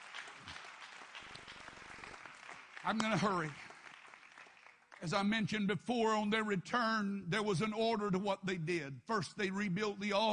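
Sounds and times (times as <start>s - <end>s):
audience clapping: 0.0s - 5.7s
speech: 2.8s - 3.6s, 5.0s - 10.3s.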